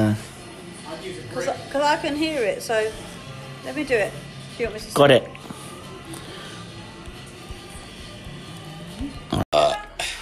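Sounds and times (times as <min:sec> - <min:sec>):
speech: 0:00.0 - 0:00.3, 0:01.3 - 0:05.5
low croaky burp: 0:09.3 - 0:09.9.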